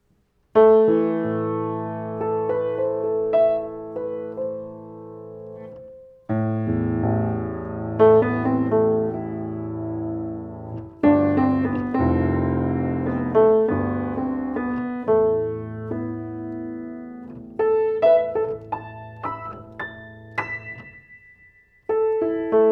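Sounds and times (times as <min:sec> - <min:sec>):
piano: 0:00.0 - 0:22.7.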